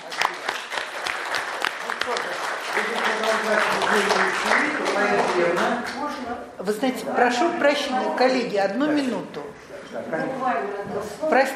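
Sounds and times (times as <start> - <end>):
audience applause: 0.0 - 5.8
speech: 2.9 - 11.5.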